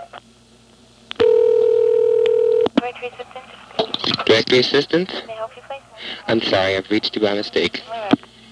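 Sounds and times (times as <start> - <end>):
low telephone tone on a trunk line: 1.2 - 2.7
speech: 3.0 - 3.4, 4.3 - 5.3, 6.2 - 8.1.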